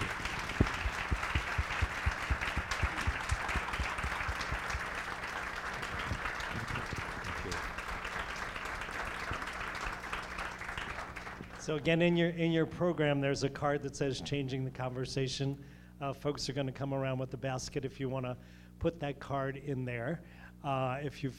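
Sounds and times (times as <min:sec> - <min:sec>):
audience applause: 0:00.0 - 0:11.8
speech: 0:11.7 - 0:21.3.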